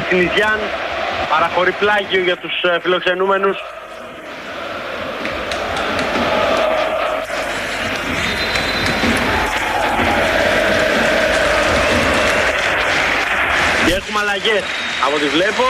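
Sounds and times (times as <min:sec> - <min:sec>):
large stadium crowd applauding substituted player: 0:00.0 - 0:15.6
speech: 0:00.1 - 0:03.8, 0:13.9 - 0:15.6.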